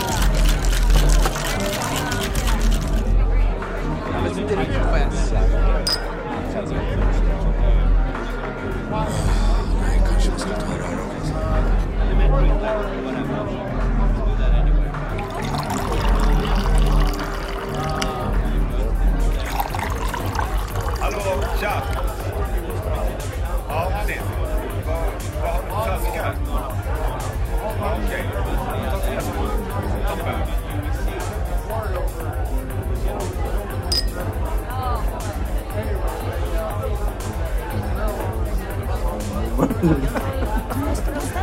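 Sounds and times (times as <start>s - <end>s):
babble of many voices in a bar: 0.0s - 41.4s
sharp clinks in a bar: 5.9s - 6.1s, 33.9s - 34.2s
laughter: 39.2s - 41.4s.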